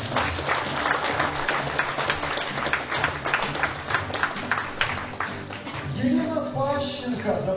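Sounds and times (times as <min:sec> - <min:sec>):
audience applause: 0:00.0 - 0:05.9
speech: 0:07.2 - 0:07.5.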